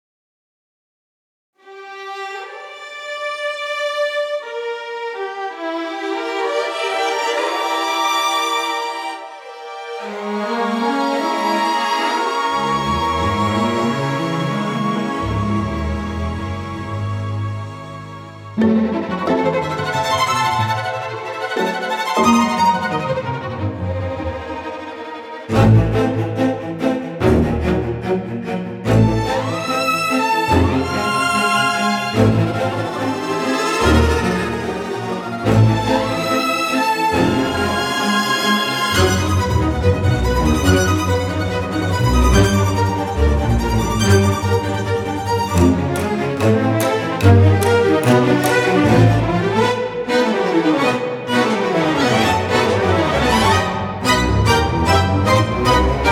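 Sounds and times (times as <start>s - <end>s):
strings: 1.6s - 56.0s.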